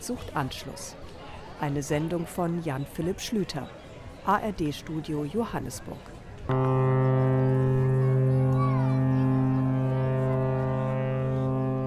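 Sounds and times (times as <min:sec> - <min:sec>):
speech: 0:00.0 - 0:06.9
horn of the British royal mail ship serving St Helena Island: 0:06.5 - 0:11.8.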